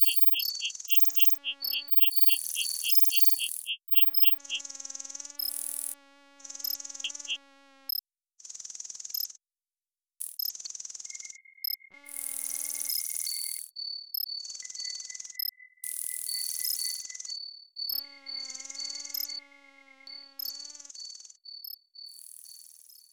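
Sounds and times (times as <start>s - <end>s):
insects: 0.0s - 8.0s, 10.2s - 23.1s.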